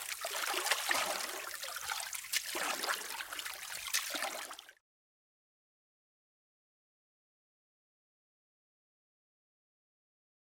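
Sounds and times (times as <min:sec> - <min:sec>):
oars splashing water from a boat: 0:00.0 - 0:04.7.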